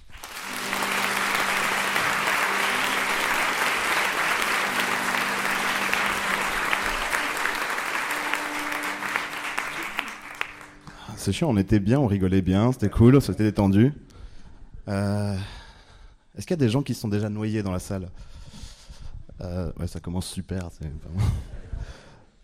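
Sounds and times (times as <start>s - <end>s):
audience applauding loudly: 0.0s - 10.9s
speech: 11.3s - 14.1s, 14.9s - 15.6s, 16.4s - 18.4s, 19.4s - 22.0s.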